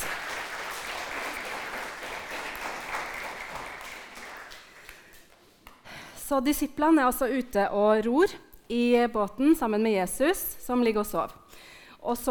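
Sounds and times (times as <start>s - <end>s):
audience applause: 0.0s - 5.2s
speech: 6.3s - 11.4s, 12.0s - 12.2s.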